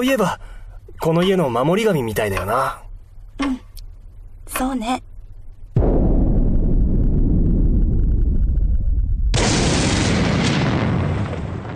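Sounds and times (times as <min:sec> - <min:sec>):
speech: 0:00.0 - 0:02.8, 0:03.4 - 0:03.6, 0:04.5 - 0:05.1
air raid bomb explosions: 0:05.7 - 0:11.7.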